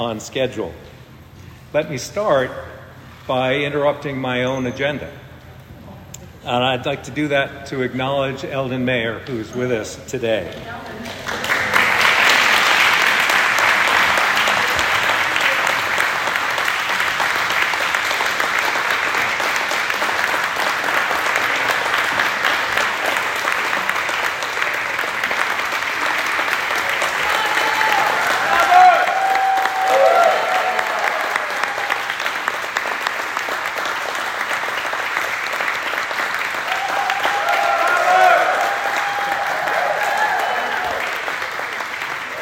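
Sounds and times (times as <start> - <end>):
speech: 0.0 - 1.0, 1.7 - 5.2, 6.4 - 11.2
sustained applause from a large audience: 11.0 - 42.3.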